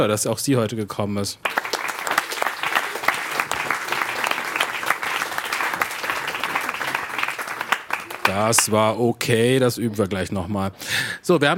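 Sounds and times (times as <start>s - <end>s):
speech: 0.0s - 1.8s, 8.4s - 11.5s
audience applause: 1.4s - 8.8s.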